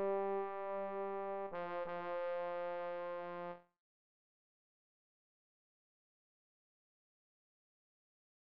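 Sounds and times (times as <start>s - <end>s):
trombone: 0.0s - 3.7s.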